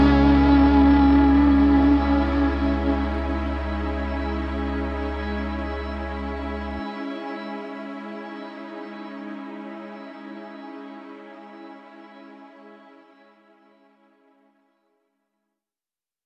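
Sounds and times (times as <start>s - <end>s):
guitar: 0.0s - 12.0s.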